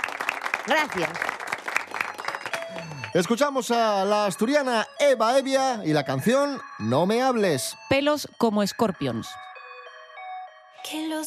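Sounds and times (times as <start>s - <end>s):
applause: 0.0s - 3.4s
speech: 0.7s - 1.3s, 2.7s - 9.4s.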